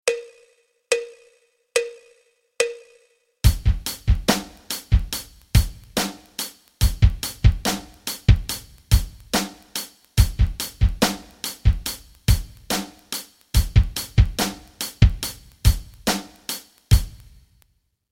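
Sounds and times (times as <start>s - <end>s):
rock rhythms: 3.4s - 17.4s.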